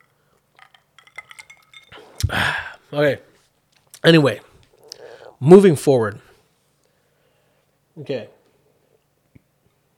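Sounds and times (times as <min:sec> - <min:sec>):
glass clinking: 0:00.0 - 0:02.3
soft sip: 0:01.9 - 0:02.8
speech: 0:02.2 - 0:03.3, 0:04.0 - 0:04.5, 0:05.4 - 0:06.2, 0:08.0 - 0:08.4.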